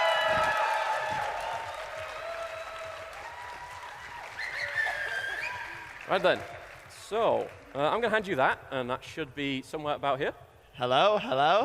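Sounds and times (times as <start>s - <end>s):
audience round of applause: 0.0s - 8.1s
speech: 6.1s - 11.6s.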